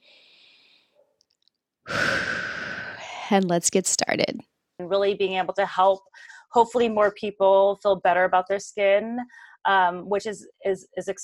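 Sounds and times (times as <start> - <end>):
deep breath: 0.0 - 1.1, 1.9 - 3.3, 9.3 - 9.6
speech: 3.3 - 11.2.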